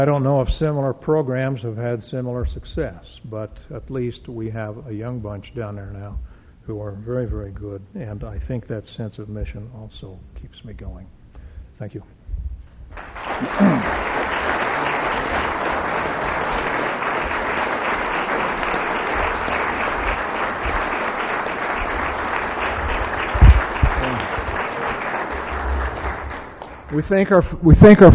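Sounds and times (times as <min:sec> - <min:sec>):
speech: 0:00.0 - 0:11.2, 0:11.8 - 0:12.2, 0:13.4 - 0:14.6, 0:26.9 - 0:28.1
audience applause: 0:13.0 - 0:28.0.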